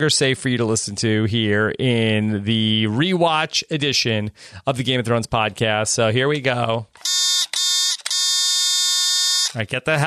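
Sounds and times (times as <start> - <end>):
speech: 0.0 - 7.2, 9.5 - 10.0
spoiler warning buzzer: 7.0 - 9.6.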